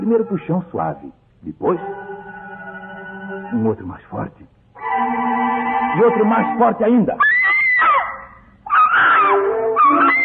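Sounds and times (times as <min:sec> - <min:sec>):
speech: 0:00.0 - 0:02.1, 0:03.4 - 0:05.3, 0:06.0 - 0:07.2
woman screaming in terror: 0:07.2 - 0:10.2.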